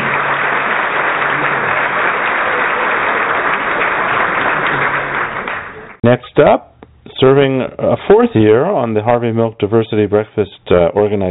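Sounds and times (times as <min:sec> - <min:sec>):
audience applause: 0:00.0 - 0:06.0
speech: 0:06.0 - 0:11.2.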